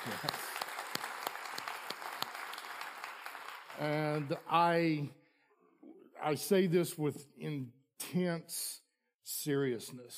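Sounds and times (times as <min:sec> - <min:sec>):
speech: 0:00.0 - 0:00.4, 0:03.8 - 0:05.2, 0:06.2 - 0:10.1
audience applause: 0:00.0 - 0:04.5.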